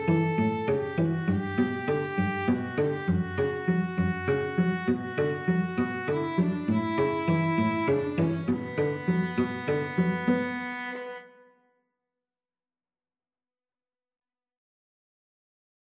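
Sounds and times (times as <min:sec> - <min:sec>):
Spanish violin trio playing: 0:00.0 - 0:11.3.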